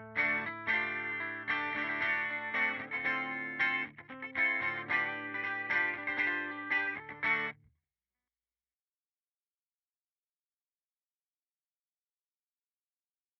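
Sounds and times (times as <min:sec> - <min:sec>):
guitar amplifier with reverb: 0:00.0 - 0:07.6.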